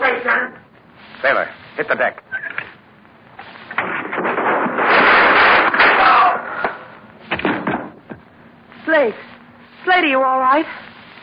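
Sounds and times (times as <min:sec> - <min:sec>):
speech: 0:01.2 - 0:02.3, 0:09.0 - 0:09.2, 0:10.1 - 0:10.8
gunshots: 0:03.7 - 0:07.7.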